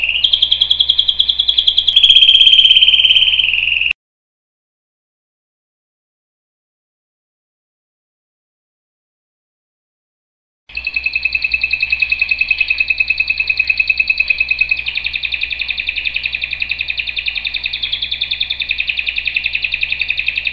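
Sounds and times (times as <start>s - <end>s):
canary singing: 0.0s - 4.0s, 10.7s - 20.5s.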